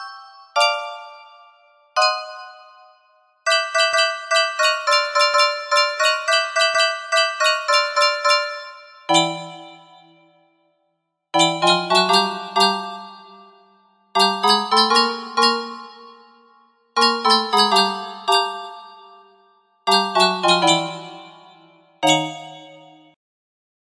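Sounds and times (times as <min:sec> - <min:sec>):
piano playing: 0:03.5 - 0:10.2, 0:11.4 - 0:16.4, 0:17.0 - 0:19.2, 0:19.9 - 0:23.1.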